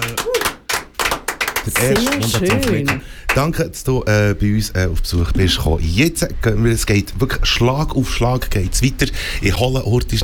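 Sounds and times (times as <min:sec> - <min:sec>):
studio applause: 0:00.0 - 0:03.6
speech: 0:01.6 - 0:10.2.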